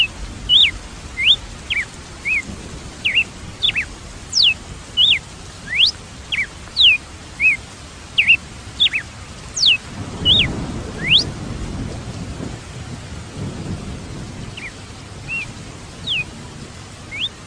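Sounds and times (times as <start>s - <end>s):
red-cowled cardinal singing high whistled phrases: 0.0s - 7.6s, 8.2s - 11.3s, 14.6s - 16.3s, 17.1s - 17.4s.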